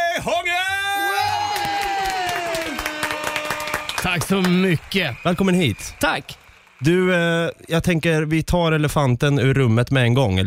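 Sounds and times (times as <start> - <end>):
speech: 0.2 - 0.8, 4.0 - 10.4
audience clapping and cheering for a DJ: 0.6 - 8.5.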